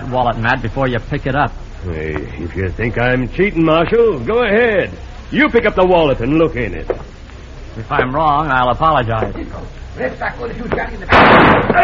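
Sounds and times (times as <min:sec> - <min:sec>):
speech: 0:00.1 - 0:07.1, 0:07.8 - 0:11.8
gunshot in a Western radio drama shooting a gun out of a hand: 0:11.1 - 0:11.8.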